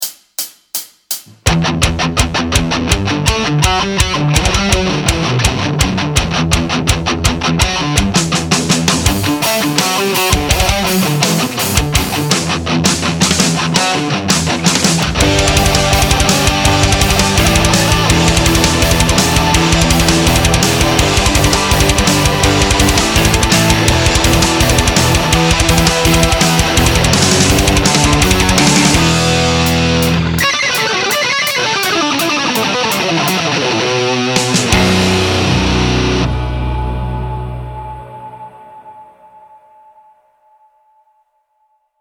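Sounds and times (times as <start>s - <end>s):
metal guitar: 1.3s - 39.1s.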